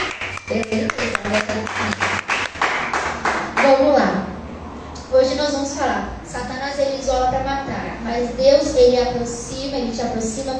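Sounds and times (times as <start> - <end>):
crowd applauding: 0.0 - 3.8
low hum of voices or music: 0.0 - 10.5
speech: 0.5 - 2.2, 3.6 - 4.3, 5.1 - 10.5.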